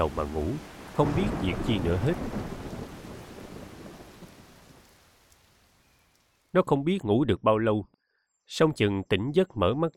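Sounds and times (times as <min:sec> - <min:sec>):
speech: 0:00.0 - 0:02.6, 0:06.6 - 0:09.9
thunder rumbling: 0:00.0 - 0:06.1
gusting wind: 0:00.0 - 0:06.2
steady rain: 0:00.0 - 0:06.5.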